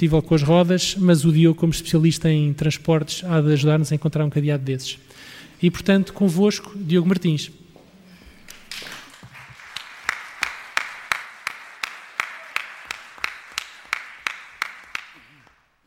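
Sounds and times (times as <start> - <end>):
speech: 0.0 - 7.6
audience clapping: 8.5 - 15.8.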